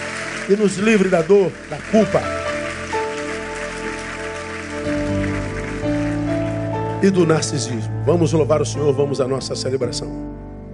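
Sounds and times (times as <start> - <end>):
audience applauding: 0.0 - 7.8
sustained keyboard or organ chords: 0.0 - 10.7
speech: 0.5 - 2.4, 7.0 - 10.3.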